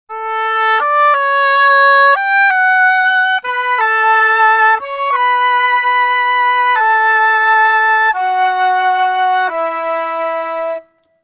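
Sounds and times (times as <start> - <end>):
flute in D major orchestral arrangement: 0.1 - 11.2
oboe in D major orchestral arrangement: 0.1 - 11.2.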